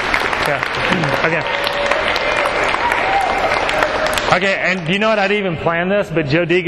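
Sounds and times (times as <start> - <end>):
audience applause: 0.0 - 5.2
speech: 0.5 - 1.9, 4.3 - 6.6.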